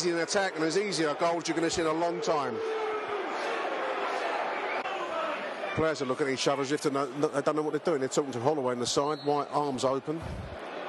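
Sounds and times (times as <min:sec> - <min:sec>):
speech: 0:00.0 - 0:02.9, 0:05.8 - 0:10.6
unhappy football stadium crowd: 0:00.0 - 0:10.8.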